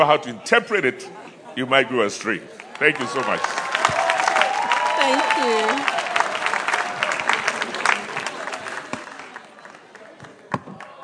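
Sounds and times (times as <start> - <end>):
speech: 0.0 - 3.6, 5.1 - 6.0
audience applause: 2.6 - 11.0.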